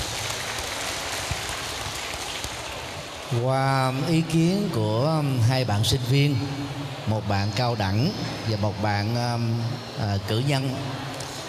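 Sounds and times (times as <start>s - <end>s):
audience applauding: 0.0s - 3.8s
speech: 3.3s - 11.1s.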